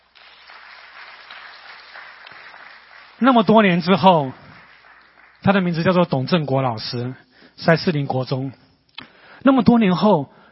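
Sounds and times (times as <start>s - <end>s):
audience applauding: 0.0s - 6.2s
speech: 3.2s - 4.4s, 5.4s - 8.6s, 9.4s - 10.4s.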